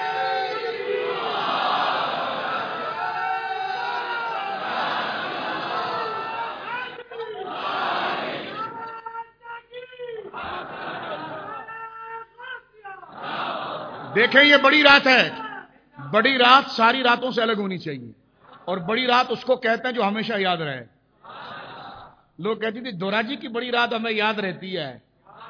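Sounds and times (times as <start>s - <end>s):
large crowd chanting a slogan at a night gathering: 0.0s - 9.0s, 10.3s - 11.8s, 13.0s - 14.2s
laughter: 0.0s - 15.3s, 21.2s - 22.2s
speech: 14.1s - 15.4s, 16.1s - 20.9s, 22.4s - 25.1s.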